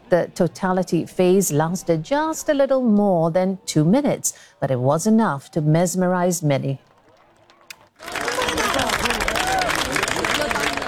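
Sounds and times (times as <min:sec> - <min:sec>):
speech: 0:00.1 - 0:06.9
crowd applauding during solar eclipse: 0:06.9 - 0:10.8
crowd cheering and whooping: 0:08.0 - 0:10.8.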